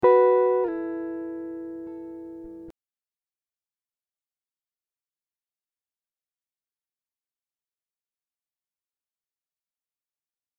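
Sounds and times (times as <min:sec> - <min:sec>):
guitar riffs in E minor at 100 BPM: 0:00.0 - 0:02.7.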